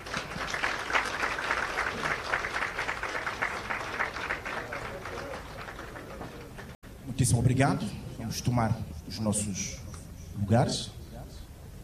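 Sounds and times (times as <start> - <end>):
applause: 0.0 - 6.8
speech: 7.2 - 9.8, 10.4 - 11.0.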